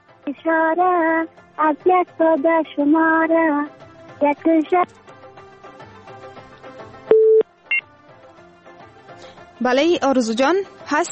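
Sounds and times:
speech: 0.3s - 5.0s, 9.6s - 11.1s
short higher dual tone: 7.1s - 7.4s
telephone tone from a call that fails to connect: 7.1s - 7.8s.

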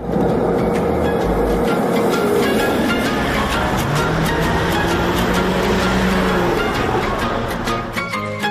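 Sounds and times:
marshrutka minibus engine and road noise during a ride: 0.0s - 8.4s.

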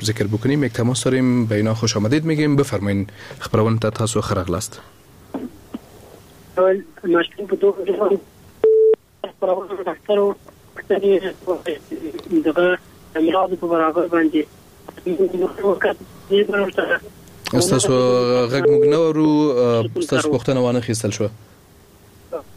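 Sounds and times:
speech: 0.0s - 5.5s, 6.6s - 8.3s, 9.2s - 21.6s
electronic phone tone as a radio phone-in caller's line is cut off: 8.6s - 9.0s, 18.6s - 19.1s.

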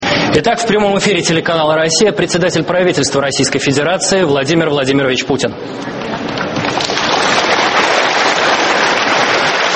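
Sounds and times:
speech: 0.4s - 6.8s
studio audience applause: 6.1s - 9.7s.

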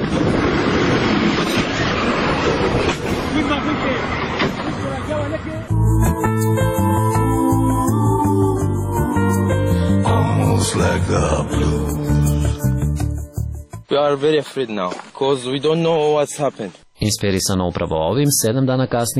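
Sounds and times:
passenger train on its regular line rumbling around a bend: 0.0s - 5.6s
sustained tonal sounds: 5.7s - 13.4s
speech: 14.0s - 19.1s.

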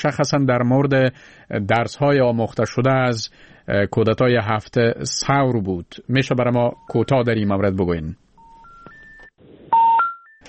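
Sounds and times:
speech: 0.0s - 8.2s
electronic telephone beeps as a call drops: 8.4s - 10.4s.

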